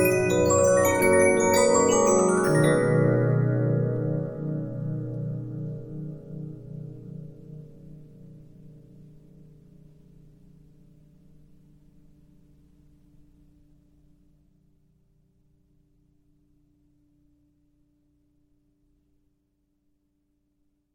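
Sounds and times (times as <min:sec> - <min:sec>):
Regina 15-inch disc music box: 0:00.0 - 0:04.8.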